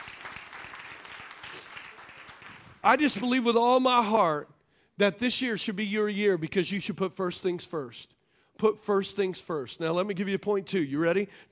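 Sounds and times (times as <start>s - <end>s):
church congregation clapping during a sermon: 0.0s - 3.4s
speech: 2.8s - 11.5s.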